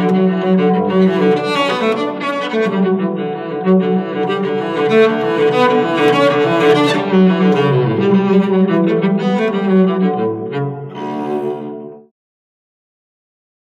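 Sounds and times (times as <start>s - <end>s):
joyful cello piece ringtone on an LG K92 5G phone: 0.0s - 12.0s.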